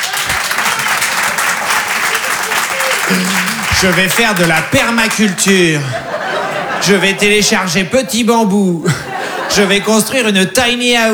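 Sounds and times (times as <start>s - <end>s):
audience applause: 0.0s - 7.1s
laughter: 0.0s - 11.1s
speech: 3.1s - 11.1s.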